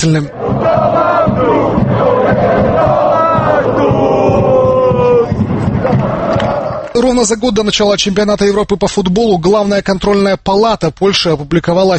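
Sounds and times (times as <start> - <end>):
speech: 0.0 - 2.0, 7.1 - 11.9
football fans chanting in a stadium: 0.3 - 7.0.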